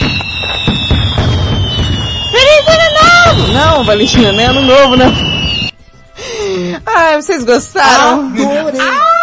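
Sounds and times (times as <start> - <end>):
fireworks explosion sound effect: 0.0 - 5.8
speech: 3.8 - 5.3, 7.0 - 9.1.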